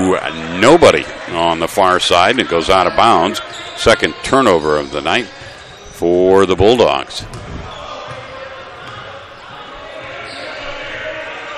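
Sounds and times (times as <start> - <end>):
crowd noise: 0.0 - 11.5
speech: 0.1 - 5.4, 6.0 - 7.4
basketball dribbled on court during a Bulldogs game: 5.2 - 10.2.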